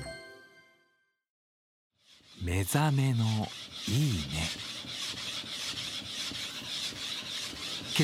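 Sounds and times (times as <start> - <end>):
file rasping wood while crafting a shamisen: 2.0 - 8.0
speech: 2.5 - 5.2.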